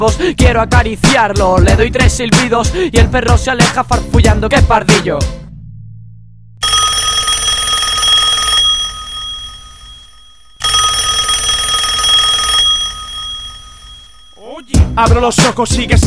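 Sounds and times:
speech: 0.0s - 5.4s, 15.0s - 16.0s
telephone ringing in an empty house: 6.6s - 14.8s.

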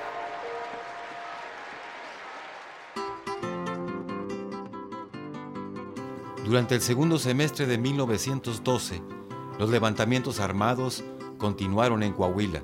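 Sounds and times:
crowd applause: 0.0s - 3.6s
speech: 6.5s - 12.6s.

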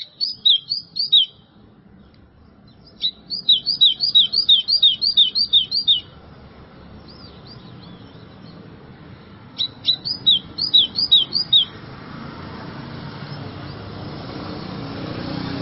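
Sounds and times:
White-throated seedeater singing rapid downslurred whistled notes: 0.0s - 1.6s, 2.7s - 6.2s, 7.0s - 8.6s, 9.5s - 11.8s.

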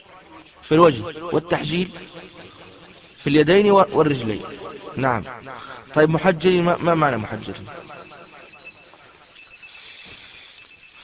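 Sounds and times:
speech: 0.6s - 2.5s, 3.2s - 8.0s
telephone ringing: 7.0s - 11.0s.

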